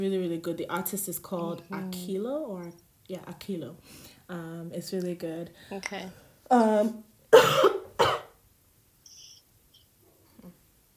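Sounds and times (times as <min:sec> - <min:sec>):
speech: 0:00.0 - 0:08.2
person coughing: 0:07.3 - 0:08.4
faint high chirp: 0:09.0 - 0:10.0.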